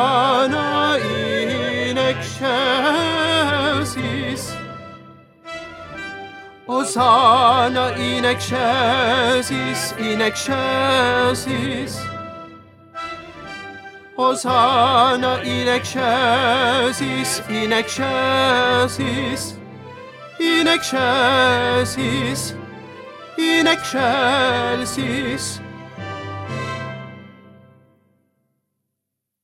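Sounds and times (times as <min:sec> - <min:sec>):
tenor singing: 0:00.0 - 0:04.8, 0:06.6 - 0:12.4, 0:14.2 - 0:19.6, 0:20.3 - 0:25.6.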